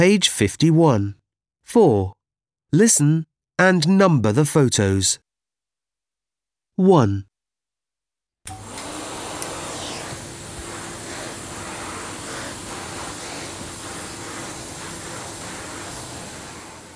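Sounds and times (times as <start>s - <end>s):
speech: 0.0s - 5.2s, 6.8s - 7.3s
floor-cleaning vacuum cleaner running: 8.5s - 16.9s.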